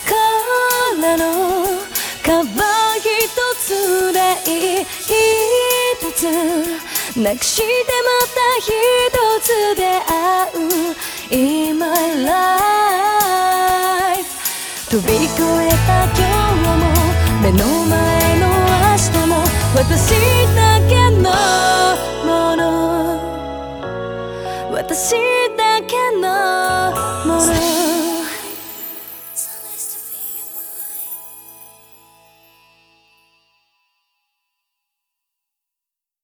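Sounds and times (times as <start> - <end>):
a cappella singing: 0.0 - 23.6, 24.6 - 29.6.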